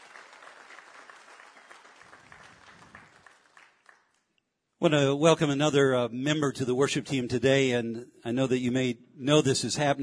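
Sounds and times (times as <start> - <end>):
church congregation applauding the worship team: 0.0 - 4.3
speech: 4.8 - 10.0.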